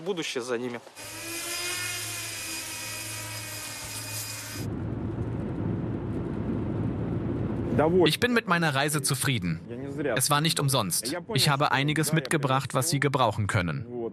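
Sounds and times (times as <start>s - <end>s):
speech: 0.0s - 1.3s, 7.8s - 14.1s
drone rotors buzzing in flight: 0.8s - 4.7s
lower rough rumbling noise: 3.7s - 12.7s.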